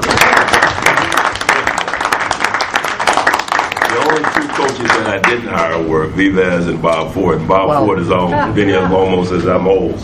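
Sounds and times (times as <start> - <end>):
sustained audience applause: 0.0 - 5.4
speech: 3.9 - 10.0.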